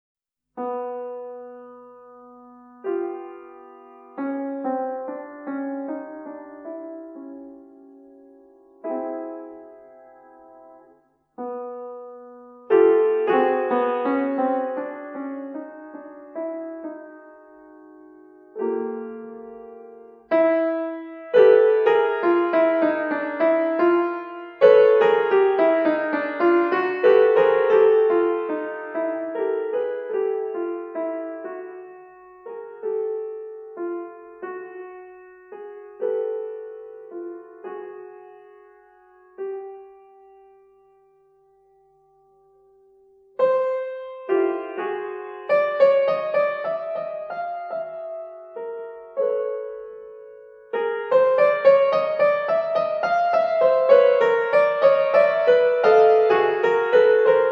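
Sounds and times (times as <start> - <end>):
solo piano music in major seconds: 0.4 - 57.4.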